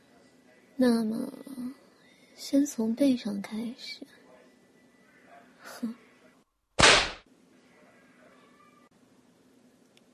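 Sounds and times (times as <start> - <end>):
speech: 0.8 - 1.8, 2.4 - 4.2, 5.7 - 6.0
whip lash striking the bare skin of a back: 6.8 - 7.2.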